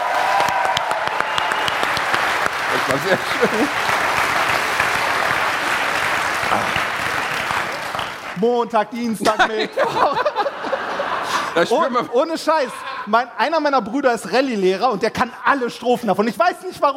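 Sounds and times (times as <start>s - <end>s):
audience applause: 0.0s - 8.4s
laughter: 2.7s - 4.8s, 9.2s - 13.4s
speech: 2.8s - 4.0s, 6.5s - 6.9s, 8.4s - 10.4s, 11.6s - 16.9s.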